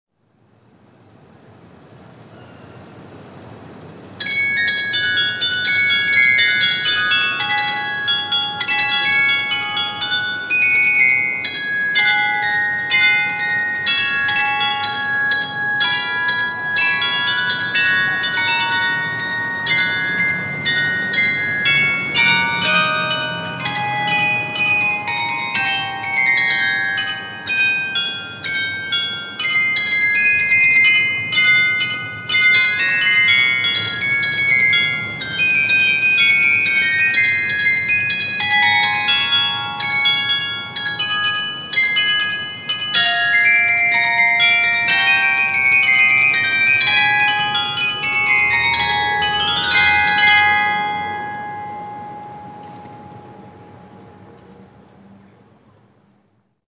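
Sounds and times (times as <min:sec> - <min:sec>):
carillon bells: 0:03.8 - 0:54.9.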